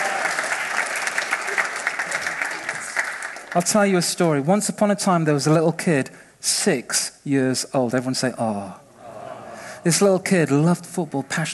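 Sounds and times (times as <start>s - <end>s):
crowd applauding: 0.0s - 3.9s
speech: 3.6s - 8.8s, 9.8s - 11.5s.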